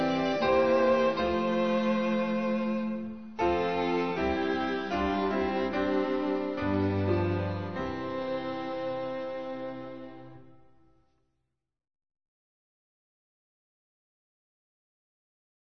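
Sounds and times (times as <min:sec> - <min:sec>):
instrumental hymn: 0:00.0 - 0:11.0.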